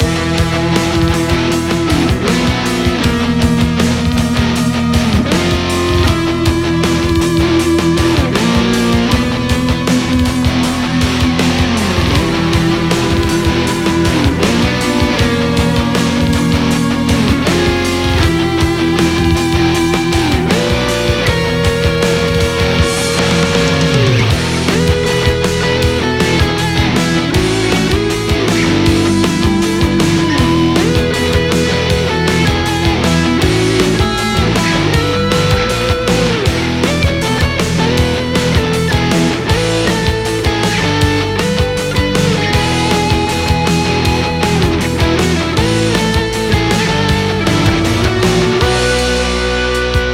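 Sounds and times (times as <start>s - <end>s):
boss battle music: 0.0s - 50.1s.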